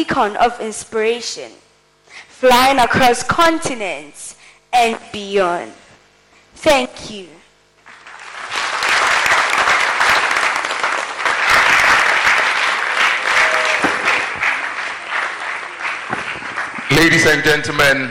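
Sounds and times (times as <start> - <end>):
speech: 0.0 - 1.6, 2.2 - 5.8, 6.6 - 7.4, 16.9 - 18.0
audience applause: 7.9 - 17.9.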